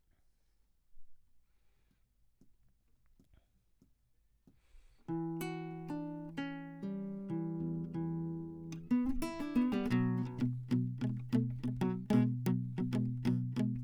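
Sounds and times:
classical guitar: 5.1s - 13.8s.

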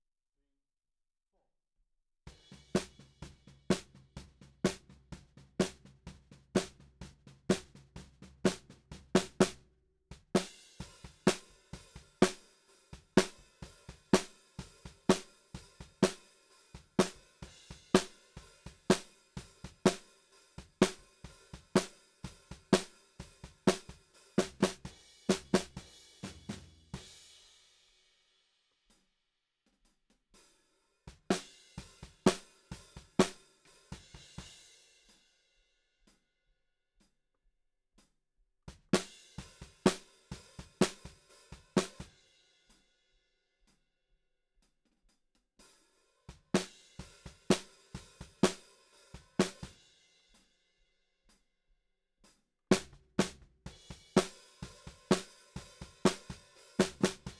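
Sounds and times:
snare drum: 2.3s - 27.3s, 31.1s - 34.5s, 38.7s - 42.1s, 46.3s - 49.8s, 52.7s - 57.3s.

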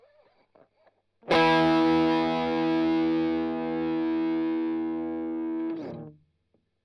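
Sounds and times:
strumming: 1.3s - 6.0s.

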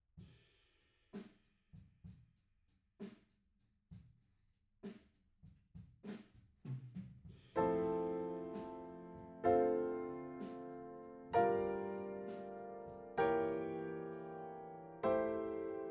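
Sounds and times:
piano note B: 7.6s - 15.8s.

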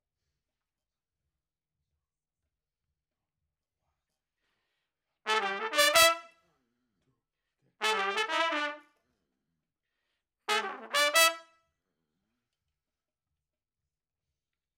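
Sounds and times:
trumpet: 5.3s - 6.4s, 7.8s - 9.0s, 10.5s - 11.6s.

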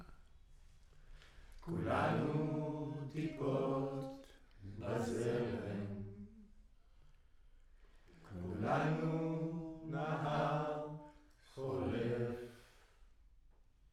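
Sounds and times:
choir singing: 1.6s - 6.6s, 8.2s - 12.9s.

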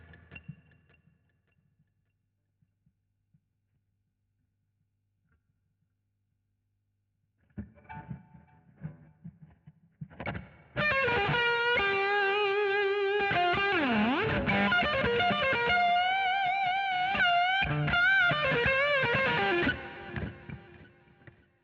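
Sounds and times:
guitar solo: 10.2s - 21.4s.

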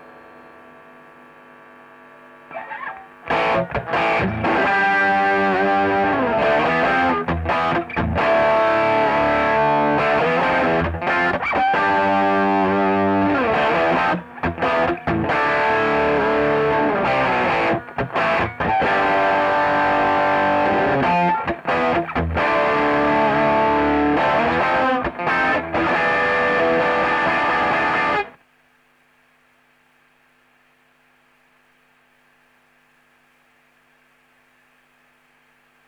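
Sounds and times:
electric guitar: 2.4s - 28.4s.

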